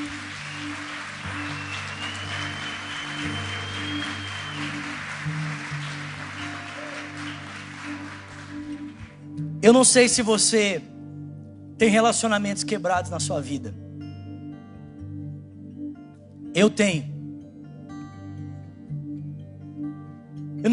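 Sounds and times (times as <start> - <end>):
large crowd applauding loudly: 0.0 - 9.2
sustained keyboard chords: 0.0 - 20.7
speech: 9.6 - 10.9, 11.8 - 13.8, 16.6 - 17.1.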